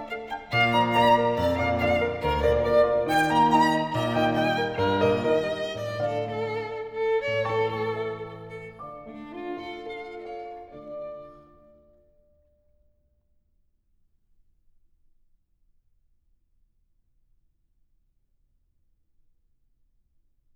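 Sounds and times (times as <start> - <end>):
piece for violin and piano in D minor: 0.0 - 12.0.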